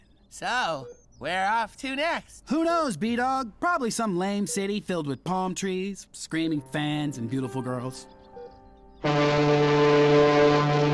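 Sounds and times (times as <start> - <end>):
speech: 0.3 - 8.2, 9.0 - 10.5
boat horn blast: 9.0 - 10.9.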